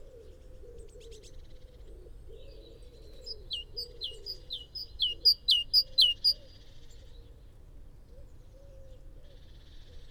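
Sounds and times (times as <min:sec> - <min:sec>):
great tit song: 0:03.3 - 0:06.4.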